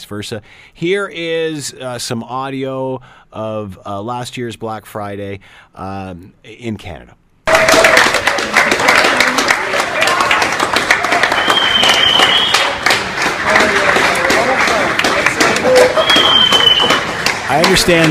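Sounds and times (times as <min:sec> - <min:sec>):
speech: 0:00.1 - 0:09.4, 0:17.5 - 0:18.1
store staff applauding shoppers: 0:07.5 - 0:18.1.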